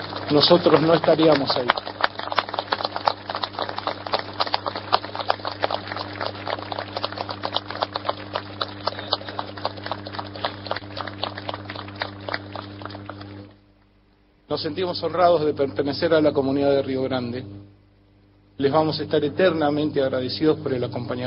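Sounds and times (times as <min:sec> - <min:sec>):
warm applause from audience: 0:00.0 - 0:13.5
speech: 0:00.3 - 0:01.9, 0:14.6 - 0:17.6, 0:18.6 - 0:21.2.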